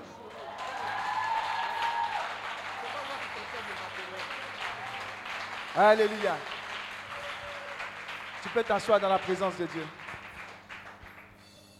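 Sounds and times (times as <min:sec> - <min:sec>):
church congregation applauding during a prayer service: 0:00.0 - 0:11.6
speech: 0:05.8 - 0:06.6, 0:08.5 - 0:10.0.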